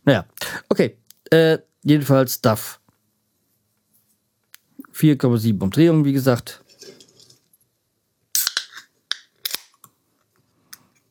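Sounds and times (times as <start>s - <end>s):
speech: 0.0s - 2.8s, 5.0s - 6.6s
beer can being opened: 8.4s - 9.7s.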